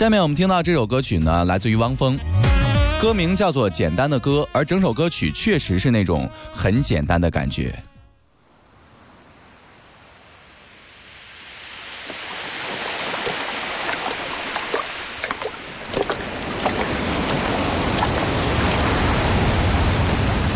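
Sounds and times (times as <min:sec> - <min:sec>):
speech: 0:00.0 - 0:02.4, 0:03.0 - 0:07.9
wind: 0:07.0 - 0:20.5
sea water: 0:08.5 - 0:20.5.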